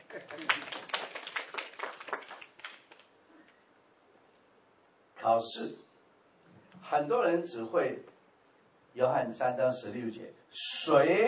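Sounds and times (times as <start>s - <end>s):
audience applause: 0.0s - 3.1s
speech: 5.3s - 5.9s, 6.9s - 8.1s, 9.0s - 11.2s.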